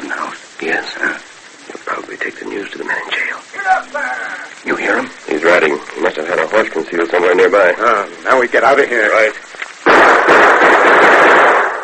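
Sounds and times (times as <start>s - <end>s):
speech: 2.3s - 10.1s
gunshots into a barrel: 9.8s - 11.8s.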